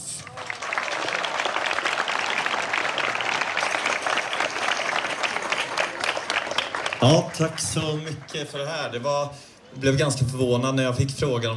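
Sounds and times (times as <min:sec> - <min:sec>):
audience applause: 0:00.1 - 0:09.0
speech: 0:07.0 - 0:11.5.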